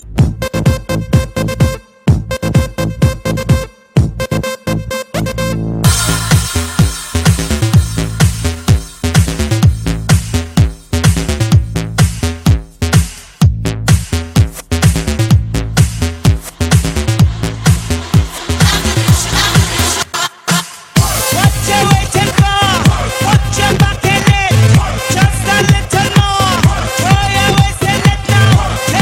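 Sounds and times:
disco music: 0.0 - 29.0.

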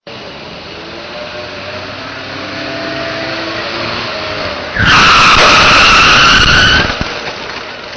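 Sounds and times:
car crash: 4.7 - 7.9.

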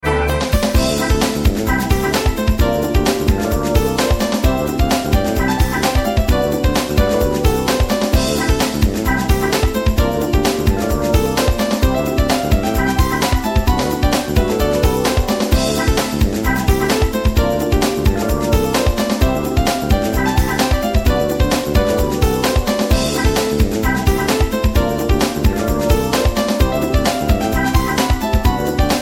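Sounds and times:
piano: 0.0 - 29.0.

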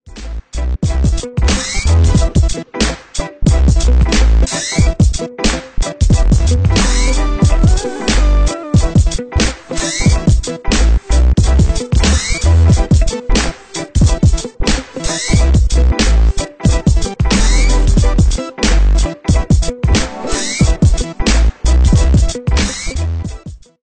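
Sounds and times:
party music: 0.2 - 23.5.

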